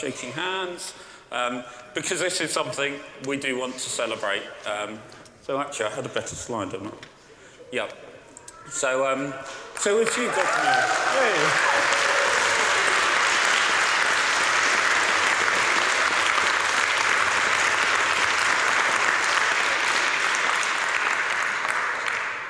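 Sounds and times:
speech: 0.0 - 7.1, 7.7 - 8.0, 8.7 - 12.0
audience applause: 9.8 - 22.4.

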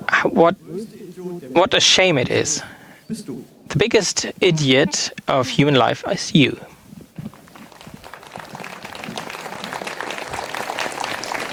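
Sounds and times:
speech: 0.3 - 6.7
audience applause: 7.2 - 11.5.

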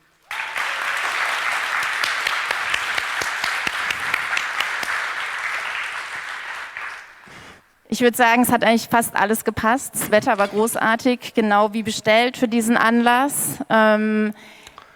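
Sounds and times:
audience applause: 0.0 - 7.6
speech: 8.0 - 14.6.

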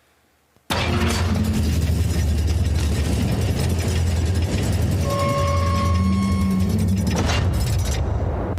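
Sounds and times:
recreated video game door sound effect: 0.7 - 2.4, 3.0 - 8.5.

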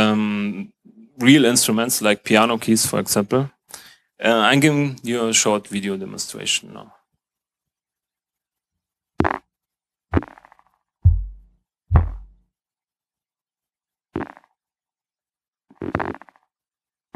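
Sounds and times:
speech: 0.0 - 0.3, 1.2 - 3.6, 4.2 - 7.0, 15.8 - 16.2
physical-model synthesized snare drum roll played with fingers: 11.1 - 12.3.

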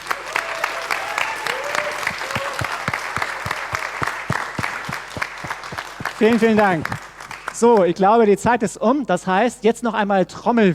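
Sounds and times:
audience applause: 0.0 - 8.0
speech: 6.2 - 7.0, 7.6 - 10.7.

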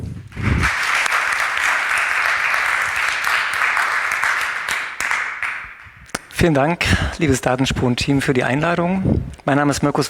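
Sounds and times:
audience applause: 0.3 - 6.2
speech: 6.4 - 10.0.

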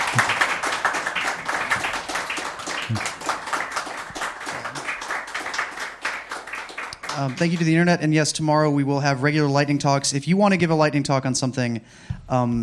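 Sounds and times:
audience applause: 0.0 - 8.0
speech: 2.9 - 3.1, 7.2 - 12.6.

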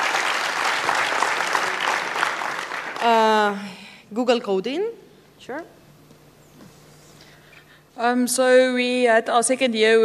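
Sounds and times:
audience applause: 0.0 - 3.2
speech: 3.0 - 5.8, 8.0 - 10.0.

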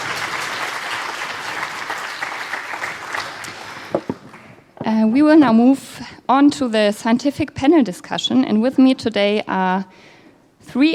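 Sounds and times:
audience applause: 0.0 - 4.6
speech: 4.9 - 10.1, 10.7 - 10.9.

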